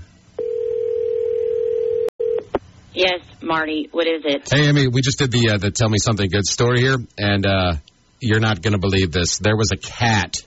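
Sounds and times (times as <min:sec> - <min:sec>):
telephone dial tone: 0:00.4 - 0:02.5
speech: 0:03.0 - 0:10.4.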